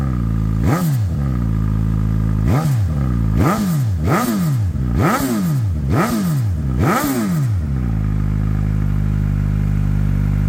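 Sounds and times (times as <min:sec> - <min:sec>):
Suzuki GSX-S1000 motorcycle original exhaust system: 0:00.0 - 0:10.4.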